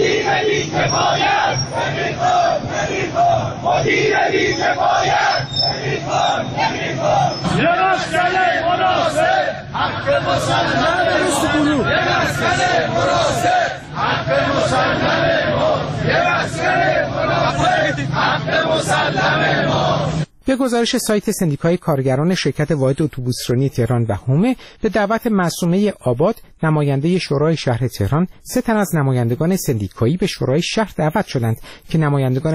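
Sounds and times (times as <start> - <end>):
protest crowd chanting slogans: 0.0 - 20.3
speech: 3.6 - 32.5.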